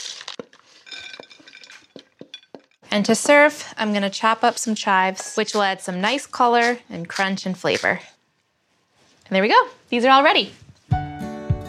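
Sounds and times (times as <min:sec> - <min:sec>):
speech: 0:02.9 - 0:08.1, 0:09.3 - 0:10.6
spoon scraping and clinking in a bowl while stirring food: 0:04.0 - 0:08.0.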